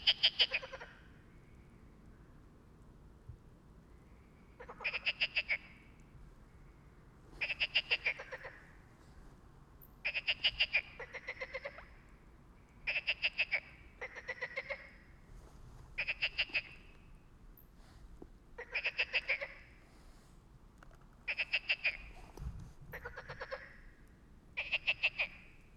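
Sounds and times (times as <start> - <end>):
frogs croaking: 0.0 - 2.2, 3.9 - 9.0, 10.0 - 15.3, 16.0 - 17.8, 18.5 - 19.9, 21.2 - 25.7.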